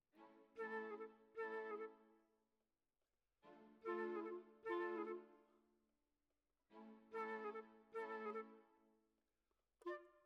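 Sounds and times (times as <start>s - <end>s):
flute: 0.5s - 2.2s, 3.8s - 5.6s, 7.1s - 8.9s, 9.8s - 10.2s.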